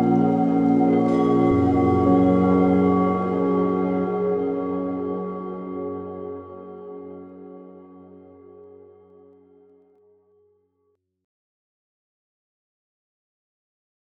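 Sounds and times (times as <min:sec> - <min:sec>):
741 Hz frequency ambient meditation music: 0:00.0 - 0:10.3.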